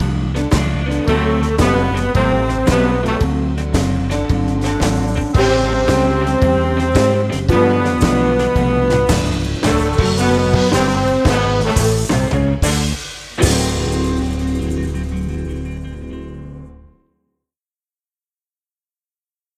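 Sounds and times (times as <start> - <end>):
blues flute: 0.8 - 15.2.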